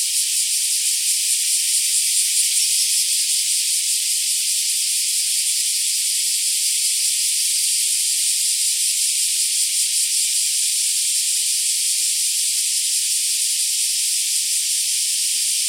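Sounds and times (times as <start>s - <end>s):
black cicadas sustaining a hissing electric-sounding drone: 0.0s - 15.6s.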